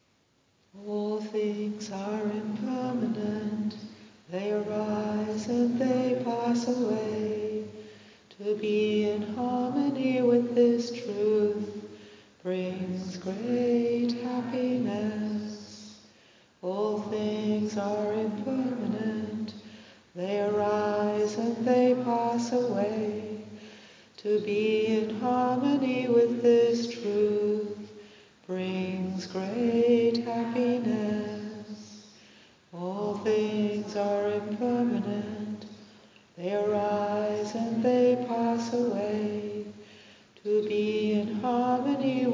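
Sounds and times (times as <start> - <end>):
person chanting in English: 0.8 - 16.0, 16.6 - 23.6, 24.2 - 32.2, 32.8 - 35.8, 36.4 - 39.8, 40.4 - 42.3.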